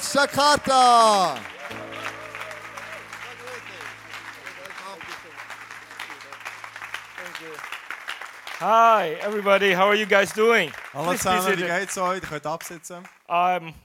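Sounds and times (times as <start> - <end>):
audience applause: 0.0 - 13.1
speech: 0.1 - 1.8, 7.4 - 7.8, 8.6 - 13.8
sustained musical tone: 1.6 - 7.9.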